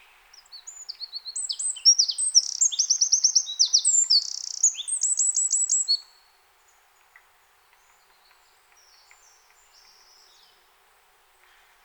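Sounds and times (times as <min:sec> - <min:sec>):
Eurasian wren song of rattling trills: 0:00.3 - 0:06.1.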